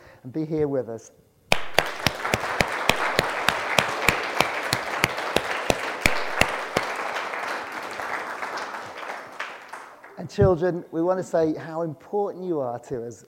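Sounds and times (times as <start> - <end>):
speech: 0.2 - 1.3, 10.2 - 13.2
crowd of children applauding: 1.5 - 10.2.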